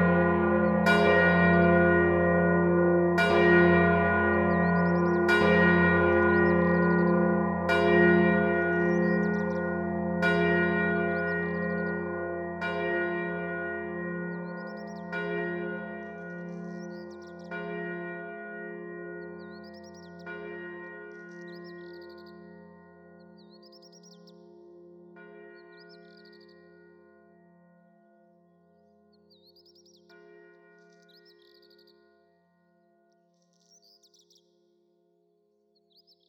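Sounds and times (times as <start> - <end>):
bells ringing: 0.0 - 23.8.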